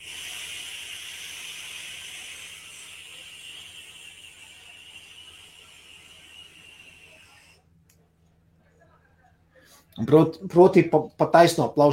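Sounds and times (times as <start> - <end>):
vapor exhaled from a vape: 0.0 - 7.6
speech: 10.0 - 11.9.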